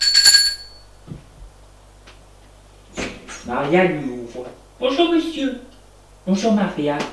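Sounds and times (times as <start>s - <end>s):
doorbell ringing at Julien's home: 0.0s - 1.0s
speech: 3.5s - 7.1s.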